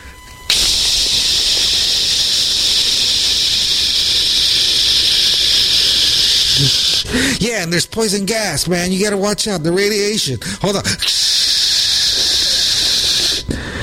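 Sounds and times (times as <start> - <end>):
voice imitating aerosol spray can hiss: 0.5 - 7.5, 10.4 - 13.8
speech: 6.6 - 11.4.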